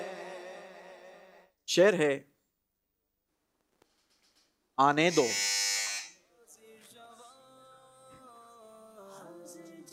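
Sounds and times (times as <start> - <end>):
speech: 1.8 - 2.3, 4.8 - 5.5
quiz-show buzzer at an Islamic quiz competition: 5.1 - 6.2.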